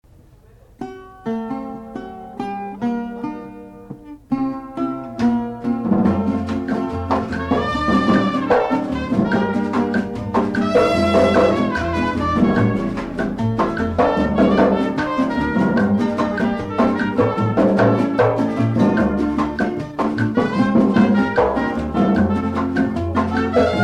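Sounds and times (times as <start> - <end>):
Afro-Cuban son music: 0.0 - 23.8.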